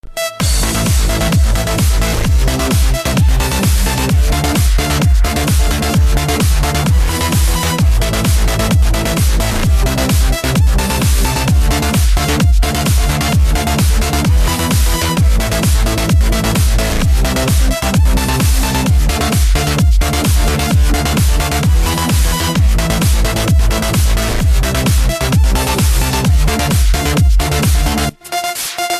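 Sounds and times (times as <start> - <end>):
club music mix: 0.0 - 28.9.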